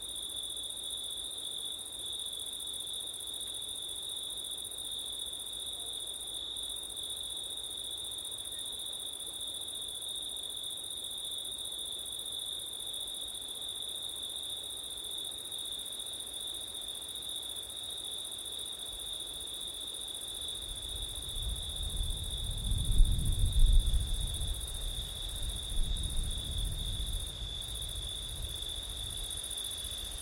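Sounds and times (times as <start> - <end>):
crickets trilling: 0.2 - 30.1
strong gusts of wind: 20.7 - 30.1.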